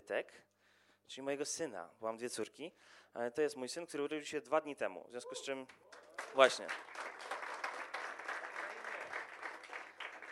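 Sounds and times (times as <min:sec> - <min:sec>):
speech: 0:00.1 - 0:00.5, 0:01.1 - 0:07.2
audience applause: 0:05.9 - 0:10.2.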